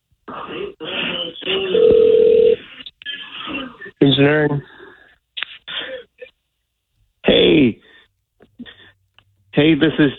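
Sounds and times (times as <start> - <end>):
telephone ringing on the line: 1.5 - 2.6
speech: 4.2 - 4.7, 9.6 - 10.1.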